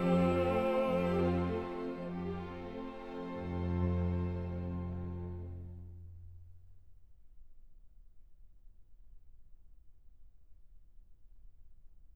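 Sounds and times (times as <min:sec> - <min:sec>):
person singing: 0:00.0 - 0:02.9
piano: 0:00.0 - 0:05.0.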